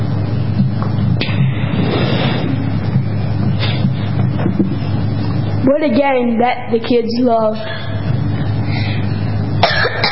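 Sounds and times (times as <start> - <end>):
steady low hum: 0.0 - 10.0
speech: 5.7 - 7.9
short cough from dirt in the throat: 9.6 - 10.0.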